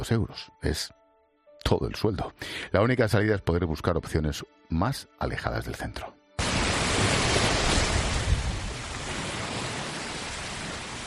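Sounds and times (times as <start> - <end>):
speech: 0.0 - 1.0, 1.6 - 6.2
sea waves: 6.4 - 11.0.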